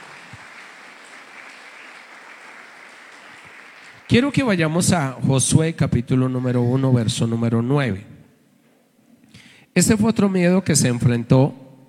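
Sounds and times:
audience applauding: 0:00.0 - 0:04.6
speech: 0:04.1 - 0:08.1, 0:09.8 - 0:11.6.

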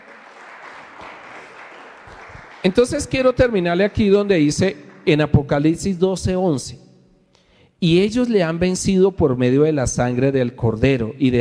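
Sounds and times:
audience applauding loudly: 0:00.0 - 0:05.8
speech: 0:02.6 - 0:06.8, 0:07.8 - 0:11.3.

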